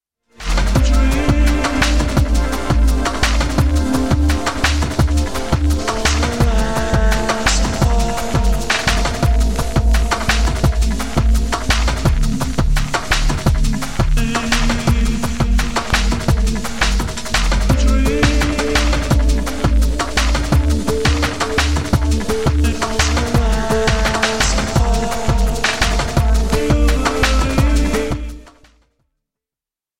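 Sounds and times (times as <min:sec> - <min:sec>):
Machinedrum drum machine rise and fall: 0:00.4 - 0:28.7.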